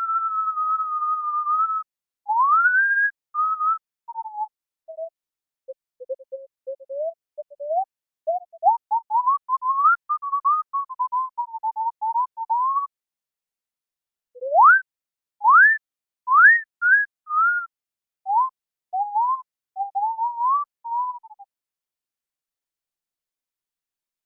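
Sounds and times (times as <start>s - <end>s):
digital fipple flute synthesized with Pd: 0.0s - 12.9s, 14.4s - 17.7s, 18.3s - 21.5s.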